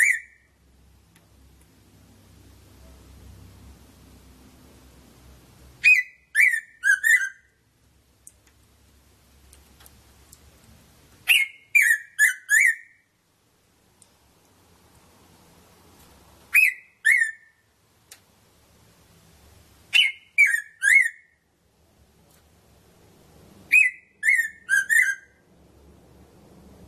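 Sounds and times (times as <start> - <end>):
red-throated parrotfinch Erythrura psittacea calling: 0.0 - 0.4, 5.8 - 7.5, 11.2 - 13.0, 16.5 - 17.6, 19.9 - 21.4, 23.7 - 25.4.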